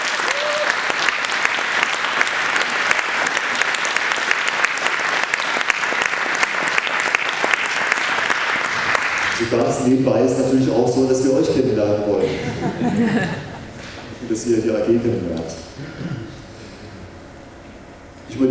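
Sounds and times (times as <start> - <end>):
audience applause: 0.0 - 9.6
speech: 9.5 - 13.5, 14.3 - 16.3
laughter: 12.1 - 14.1.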